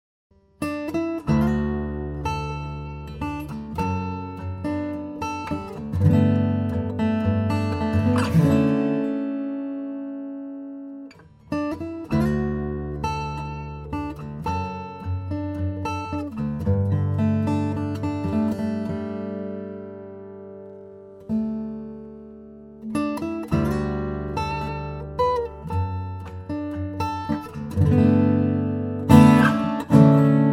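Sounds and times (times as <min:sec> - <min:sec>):
guitar riff: 0:00.6 - 0:30.5.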